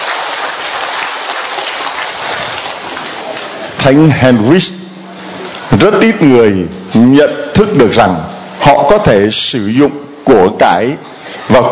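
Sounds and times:
audience applause: 0:00.0 - 0:04.0
speech: 0:03.8 - 0:04.8, 0:05.7 - 0:11.6.

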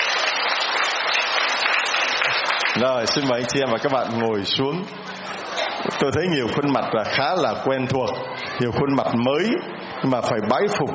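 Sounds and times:
church congregation applauding: 0:00.0 - 0:04.2
speech: 0:02.8 - 0:10.9.

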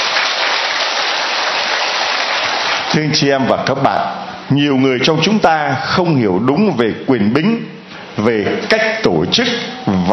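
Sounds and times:
Catholic congregation applauding at Mass: 0:00.0 - 0:03.1
speech: 0:02.9 - 0:10.1.

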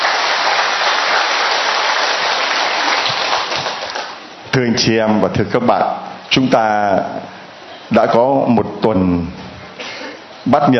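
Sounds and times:
audience applause: 0:00.0 - 0:04.2
speech: 0:04.6 - 0:07.3, 0:07.9 - 0:09.4, 0:10.4 - 0:10.7.

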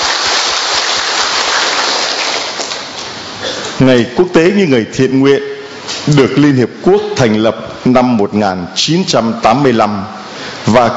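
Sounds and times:
audience applause: 0:00.0 - 0:03.0
speech: 0:03.8 - 0:10.9.

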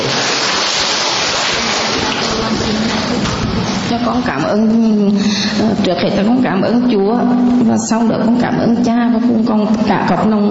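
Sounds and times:
audience applause: 0:00.0 - 0:03.9
speech: 0:04.1 - 0:10.4.

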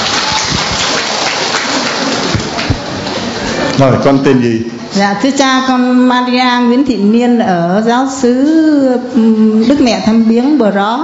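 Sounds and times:
applause: 0:00.0 - 0:03.3
speech: 0:03.8 - 0:11.0.

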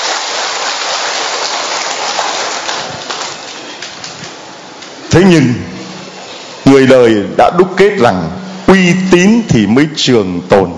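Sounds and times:
round of applause: 0:00.0 - 0:04.4
speech: 0:05.2 - 0:05.7, 0:06.7 - 0:10.7.

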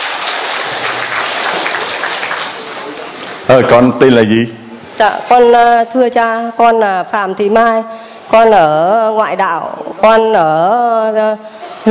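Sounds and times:
audience applause: 0:00.0 - 0:03.5
speech: 0:03.5 - 0:11.9.

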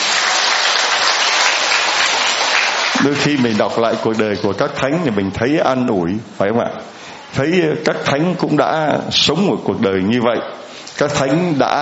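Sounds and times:
applause from a church congregation during a celebration of a patron saint: 0:00.0 - 0:04.4
speech: 0:03.0 - 0:11.7.

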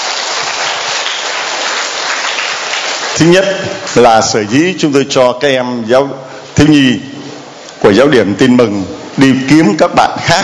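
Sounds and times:
audience applauding: 0:00.0 - 0:03.6
speech: 0:03.2 - 0:07.1, 0:07.8 - 0:10.4.

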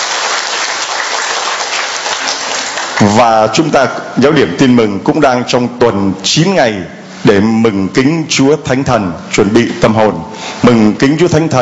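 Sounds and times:
audience applauding: 0:00.0 - 0:03.3
speech: 0:03.0 - 0:11.6.

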